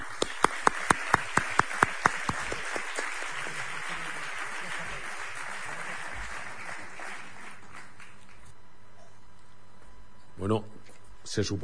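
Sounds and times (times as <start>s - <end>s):
audience applause: 0.0s - 8.5s
speech: 10.5s - 11.6s.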